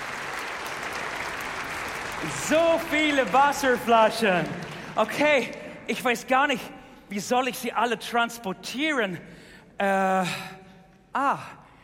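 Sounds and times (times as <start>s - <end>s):
audience applause: 0.0s - 5.5s
speech: 2.2s - 11.6s.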